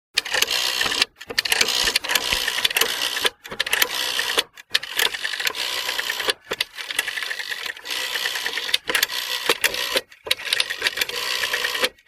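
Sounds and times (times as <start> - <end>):
old phone number dial turning: 0.2 - 12.0.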